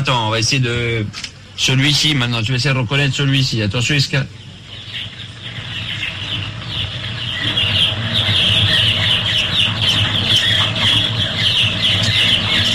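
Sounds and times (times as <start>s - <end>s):
speech: 0.0s - 5.1s
steady low hum: 0.0s - 12.7s
chicks peeping in a henhouse: 4.4s - 12.7s.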